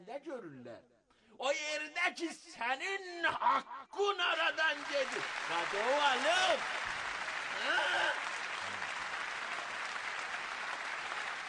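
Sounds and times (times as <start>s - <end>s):
speech: 0.1s - 6.8s, 7.6s - 8.8s
audience applause at a spoken-word event: 4.5s - 11.4s.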